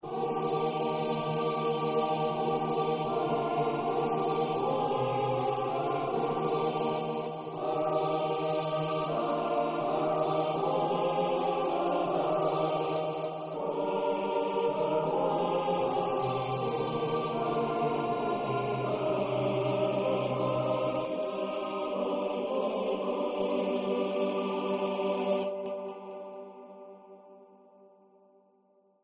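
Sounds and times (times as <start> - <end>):
choir singing a Kyrie a cappella: 0.0 - 27.6.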